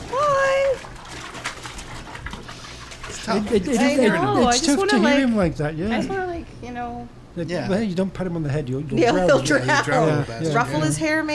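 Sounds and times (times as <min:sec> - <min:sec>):
water bubbling and sloshing: 0:00.0 - 0:04.0
speech: 0:03.3 - 0:06.3, 0:07.1 - 0:11.3.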